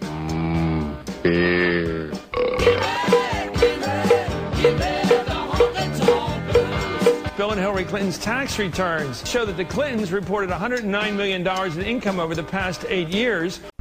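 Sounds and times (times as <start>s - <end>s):
honky tonk music: 0.0s - 13.7s
cowbell: 2.6s - 7.3s.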